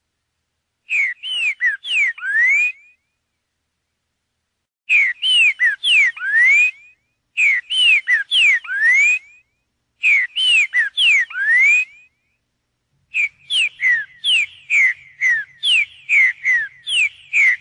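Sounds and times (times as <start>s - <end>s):
green-winged saltator song: 0.8s - 3.4s, 4.9s - 12.4s, 13.1s - 17.5s.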